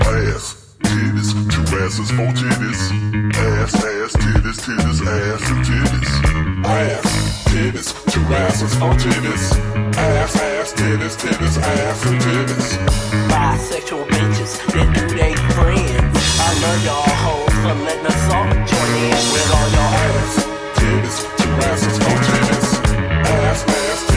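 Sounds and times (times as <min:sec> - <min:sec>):
bass: 0:00.0 - 0:24.1.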